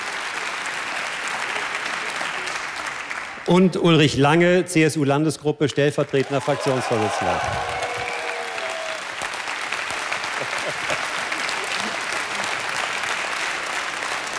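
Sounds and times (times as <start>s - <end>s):
audience applause: 0.0s - 3.5s, 6.1s - 14.3s
speech: 3.5s - 7.8s
laughter: 10.0s - 12.9s.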